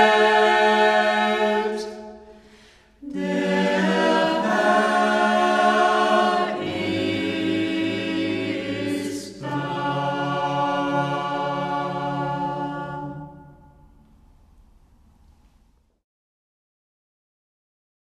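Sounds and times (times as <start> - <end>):
vocal ensemble singing: 0.0 - 14.0.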